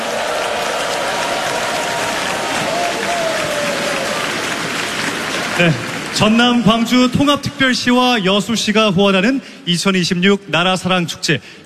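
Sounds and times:
audience applause: 0:00.0 - 0:07.1
speech: 0:05.6 - 0:11.6.

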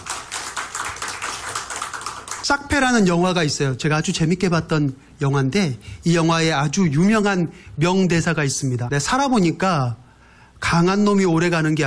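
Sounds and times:
church congregation clapping in a rhythmic pulse: 0:00.0 - 0:03.2
speech: 0:02.4 - 0:10.0, 0:10.6 - 0:11.8.

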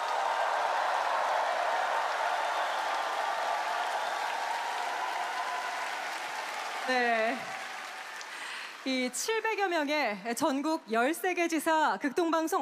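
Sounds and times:
large audience applause: 0:00.0 - 0:09.7
speech: 0:06.9 - 0:07.6, 0:08.8 - 0:12.6.

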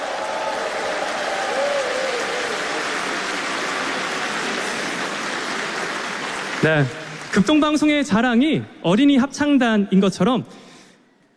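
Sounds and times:
audience applause: 0:00.0 - 0:08.0
speech: 0:06.6 - 0:10.7.

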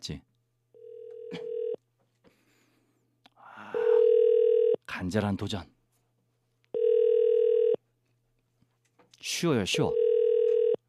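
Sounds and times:
speech: 0:00.0 - 0:00.3, 0:05.0 - 0:05.8, 0:09.2 - 0:10.0
telephone dial tone while placing call: 0:00.8 - 0:01.8, 0:03.8 - 0:04.8, 0:06.7 - 0:07.8, 0:09.9 - 0:10.8.

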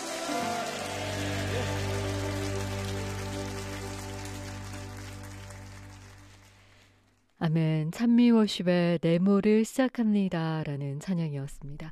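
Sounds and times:
low sustained keyboard chord: 0:00.0 - 0:06.2
audience clapping: 0:00.0 - 0:07.4
speech: 0:07.4 - 0:11.9.

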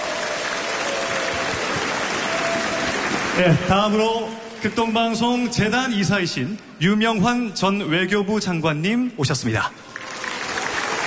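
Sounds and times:
audience applause: 0:00.0 - 0:05.0, 0:09.8 - 0:11.0
speech: 0:03.4 - 0:09.9.

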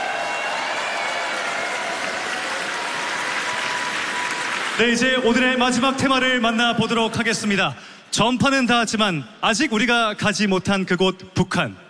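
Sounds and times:
audience applause: 0:00.0 - 0:05.5
speech: 0:04.8 - 0:11.8.

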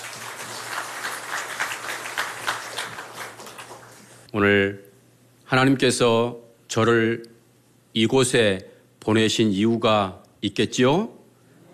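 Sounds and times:
audience applause: 0:00.0 - 0:04.2
speech: 0:04.3 - 0:04.9, 0:05.5 - 0:07.3, 0:07.9 - 0:11.2.

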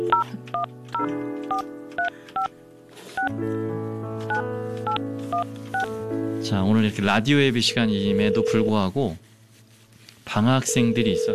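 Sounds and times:
telephone number being dialed: 0:00.0 - 0:02.5, 0:08.1 - 0:08.7
speech: 0:00.0 - 0:03.8, 0:05.3 - 0:09.3, 0:10.3 - 0:11.3.

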